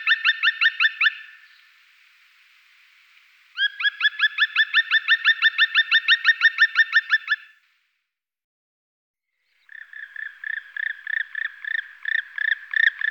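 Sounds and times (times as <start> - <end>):
black woodpecker giving sharp ringing notes: 0.0 - 1.4, 3.6 - 7.5, 9.6 - 13.0.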